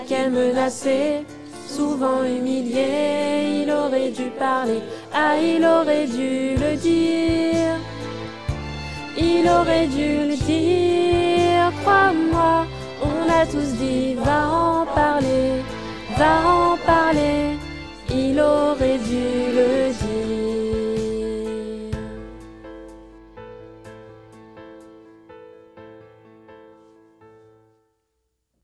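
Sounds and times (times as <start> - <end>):
choir singing: 0.0 - 8.2, 9.0 - 21.8.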